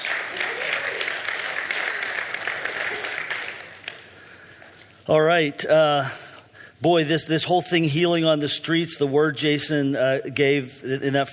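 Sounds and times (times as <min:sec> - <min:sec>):
audience clapping: 0:00.0 - 0:04.8
speech: 0:05.1 - 0:06.2, 0:06.8 - 0:11.3.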